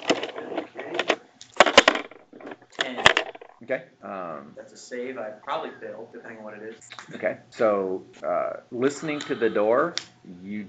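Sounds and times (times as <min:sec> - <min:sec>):
twenty-sided die rolling across a hard surface: 0:00.0 - 0:03.6
speech: 0:02.9 - 0:10.6.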